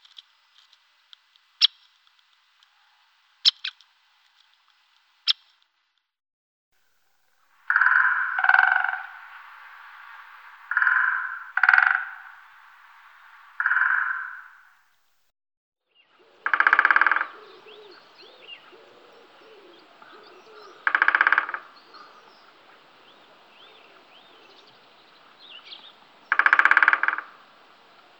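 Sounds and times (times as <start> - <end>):
great spotted woodpecker sharp call notes: 3.4 - 3.8, 6.8 - 15.2, 16.1 - 28.1.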